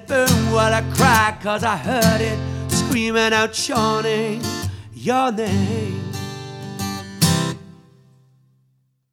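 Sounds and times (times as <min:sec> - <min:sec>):
solo singer singing: 0:00.0 - 0:06.3
guitar played by the singer: 0:00.0 - 0:08.5.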